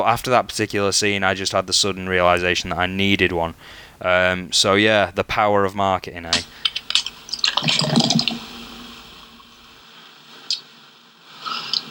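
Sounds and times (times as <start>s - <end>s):
speech: 0.0s - 6.7s, 7.6s - 8.2s
dark bubbly Coke being poured and fizzing: 6.7s - 9.8s.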